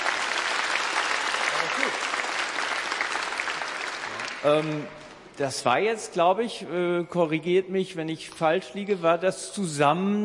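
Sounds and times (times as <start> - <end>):
audience applause: 0.0 - 4.8
speech: 4.4 - 10.2.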